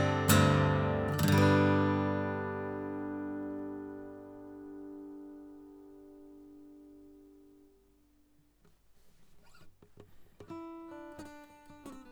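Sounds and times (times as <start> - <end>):
stroke on the neck of an acoustic guitar: 0.0 - 5.2.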